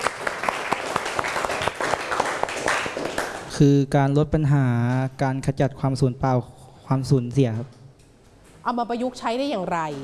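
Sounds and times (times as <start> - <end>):
classroom applause: 0.0 - 3.6
speech: 3.6 - 7.8, 8.6 - 10.0.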